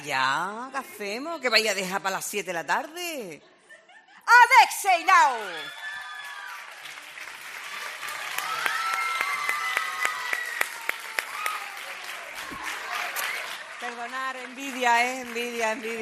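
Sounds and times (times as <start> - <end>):
speech: 0.0 - 3.6, 4.3 - 5.8, 13.8 - 16.0
people cheering: 5.0 - 16.0
loud audience applause: 5.4 - 16.0.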